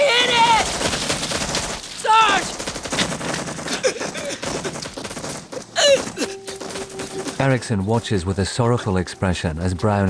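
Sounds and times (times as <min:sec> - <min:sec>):
gunfire in a battle: 0:00.3 - 0:07.4
speech: 0:07.4 - 0:10.0.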